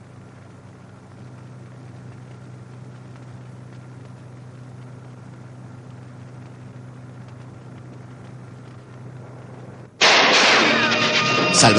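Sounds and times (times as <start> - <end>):
rifle gunshots: 10.0 - 11.5.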